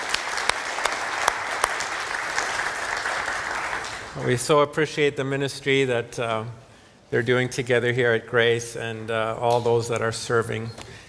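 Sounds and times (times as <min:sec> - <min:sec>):
audience applause: 0:00.0 - 0:04.3
speech: 0:04.2 - 0:10.9.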